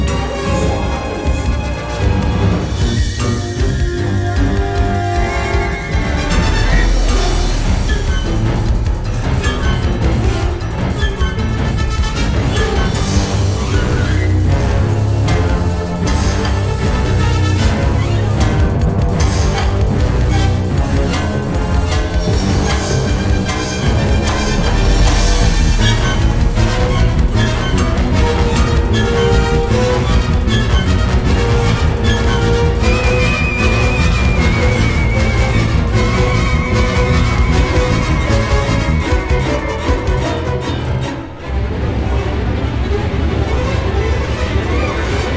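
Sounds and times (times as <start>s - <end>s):
film music: 0.0s - 45.3s.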